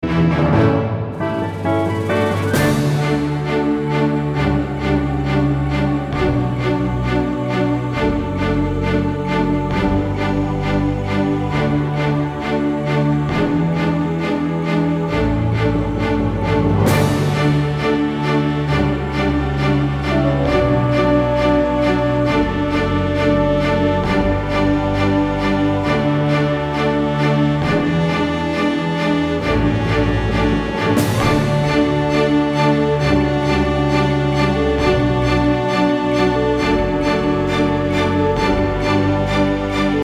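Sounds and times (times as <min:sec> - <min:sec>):
orchestra: 0:00.0 - 0:40.0.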